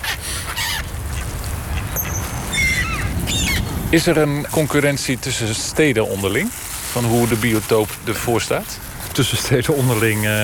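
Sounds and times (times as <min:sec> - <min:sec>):
male coot high-pitched squeaking call: 0:00.0 - 0:00.9, 0:01.9 - 0:03.7
speech: 0:03.9 - 0:10.4.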